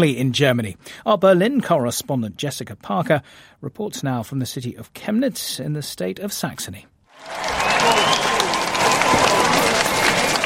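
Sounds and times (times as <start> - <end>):
speech: 0.0 - 8.4
crowd gathering in Chemnitz city square: 7.2 - 10.4.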